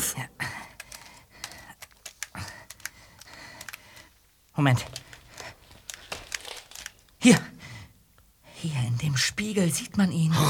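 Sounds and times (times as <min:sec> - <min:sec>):
computer clicks while clicking through photos: 0:00.8 - 0:04.1, 0:04.8 - 0:07.1
speech: 0:04.6 - 0:05.0, 0:07.2 - 0:07.5, 0:08.6 - 0:10.4.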